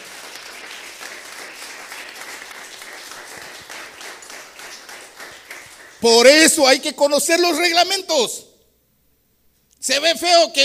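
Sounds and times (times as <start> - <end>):
audience applause: 0.0 - 6.1
speech: 6.0 - 8.4, 9.9 - 10.6.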